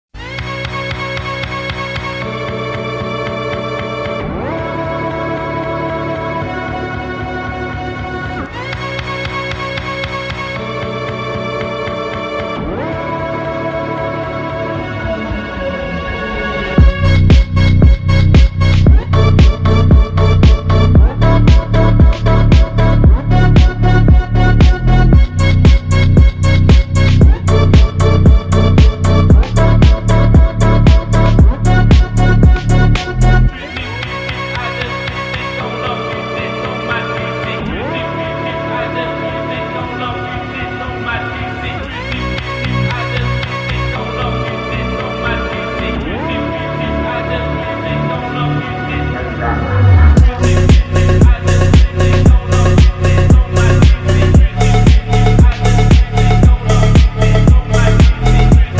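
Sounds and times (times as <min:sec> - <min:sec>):
phonk music: 0:00.2 - 0:58.7.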